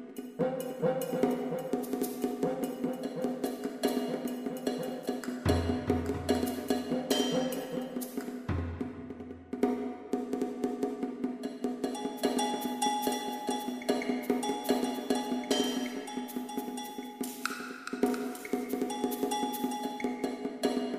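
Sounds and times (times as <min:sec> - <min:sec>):
drum music: 0:00.4 - 0:20.9.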